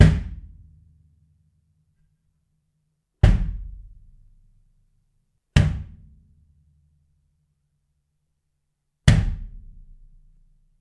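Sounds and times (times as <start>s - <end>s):
Gretsch Catalina 22 kick drum with resonant head without hole: 0.0s - 0.7s, 3.2s - 4.0s, 5.6s - 6.2s, 9.1s - 9.9s.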